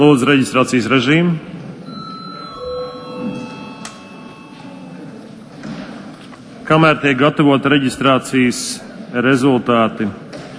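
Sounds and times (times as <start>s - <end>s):
speech: 0.0s - 1.5s, 6.7s - 10.2s
faint murmur of room noise: 0.0s - 10.5s
parliament session bell ringing: 1.8s - 5.5s.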